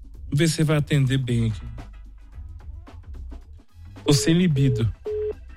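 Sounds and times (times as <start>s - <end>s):
speech: 0.4s - 1.7s, 4.1s - 5.0s
two-tone telephone keypad beeps while calling a toll-free number: 4.1s - 5.5s.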